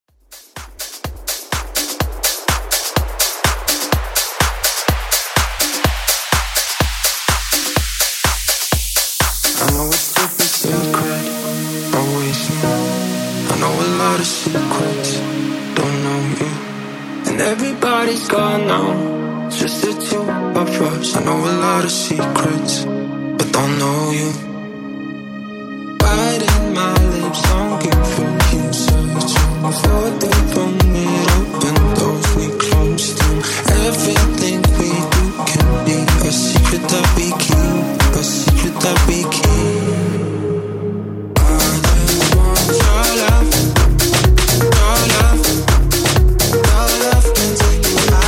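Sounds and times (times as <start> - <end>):
club extended mix at 125 bpm: 0.2 - 48.2.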